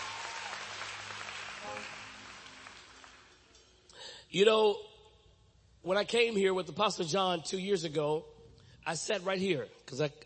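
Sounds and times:
audience clapping: 0:00.0 - 0:03.7
speech: 0:04.3 - 0:04.9, 0:05.8 - 0:10.2.

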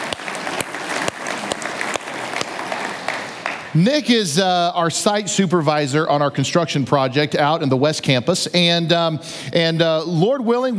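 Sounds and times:
crowd applause: 0:00.0 - 0:04.1
speech: 0:03.7 - 0:10.7.

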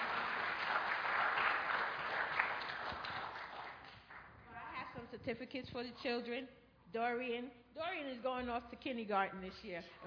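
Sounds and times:
audience applause: 0:00.0 - 0:04.2
speech: 0:05.2 - 0:10.0.

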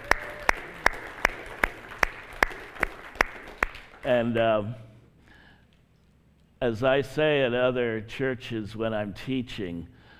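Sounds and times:
hand claps: 0:00.0 - 0:04.4
speech: 0:04.0 - 0:04.9, 0:06.6 - 0:10.0.

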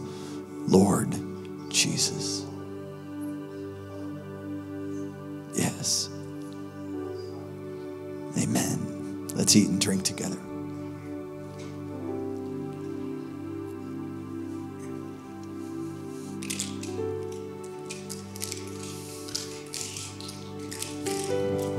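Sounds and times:
music playing: 0:00.0 - 0:21.7
speech: 0:00.7 - 0:02.5, 0:05.8 - 0:06.1, 0:09.5 - 0:10.6
plastic cups crackling as they break: 0:16.3 - 0:21.7.

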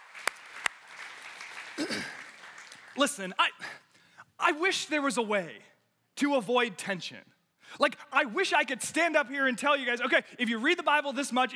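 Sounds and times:
audience clapping: 0:00.0 - 0:03.4
speech: 0:01.8 - 0:02.2, 0:03.0 - 0:03.6, 0:04.4 - 0:11.5.

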